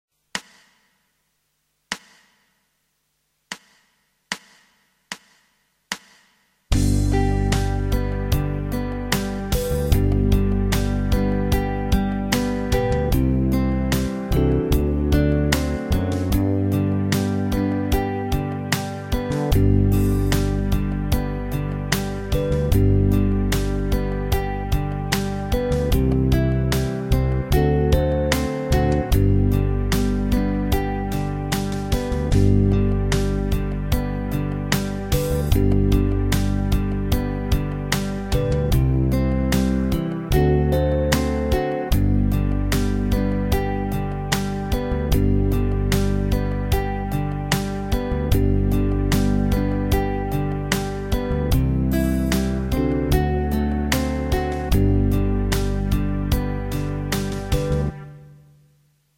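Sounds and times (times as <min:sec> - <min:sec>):
guitar backing: 0:06.7 - 0:58.3.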